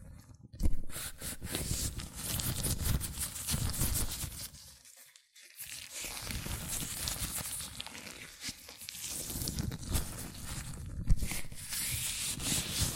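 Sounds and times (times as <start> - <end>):
latex gloves rubbing and squeaking against hands: 0.7 - 12.9.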